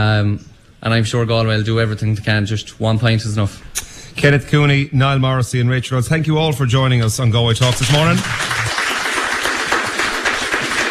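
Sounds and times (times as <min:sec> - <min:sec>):
speech: 0:00.0 - 0:08.6
crowd applauding in Gallagher's pub in Ballyfag: 0:07.6 - 0:10.8.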